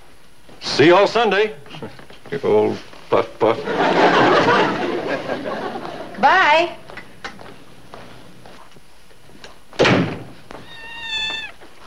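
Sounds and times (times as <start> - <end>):
speech: 0.8 - 6.8
laughter: 3.4 - 6.2
cat meowing: 10.5 - 11.6.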